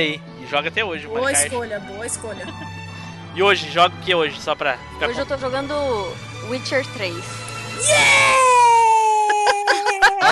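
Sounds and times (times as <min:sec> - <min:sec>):
speech: 0:00.0 - 0:08.4
laughter: 0:02.2 - 0:02.9, 0:08.8 - 0:10.3
person screaming excitedly: 0:07.8 - 0:10.3.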